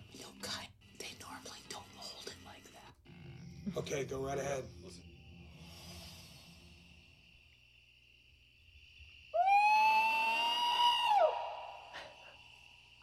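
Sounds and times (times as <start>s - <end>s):
speech: 3.7s - 5.0s
person imitating a Bigfoot call: 9.4s - 12.6s.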